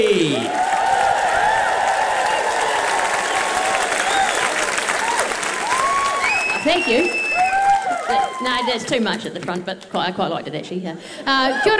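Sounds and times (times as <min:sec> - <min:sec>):
speech: 0:00.0 - 0:00.6, 0:06.6 - 0:07.2, 0:08.1 - 0:11.7
audience applause welcoming a host at an evening celebration: 0:00.0 - 0:09.5
audience whistles and cheers: 0:00.7 - 0:08.5.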